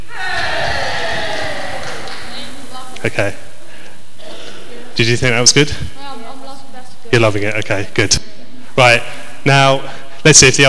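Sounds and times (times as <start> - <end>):
audience cheering for a team: 0.0 - 2.7
speech: 3.0 - 3.5, 5.0 - 5.9, 7.1 - 10.6.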